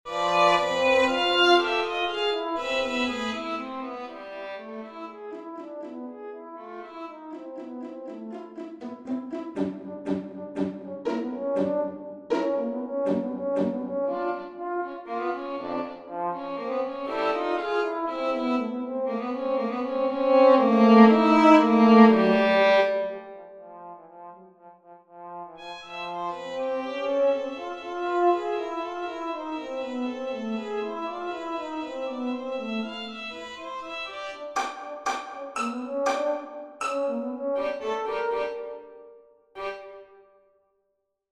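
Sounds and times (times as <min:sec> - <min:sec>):
violin and horn duet: 0:00.1 - 0:23.6, 0:25.6 - 0:39.0, 0:39.6 - 0:40.1.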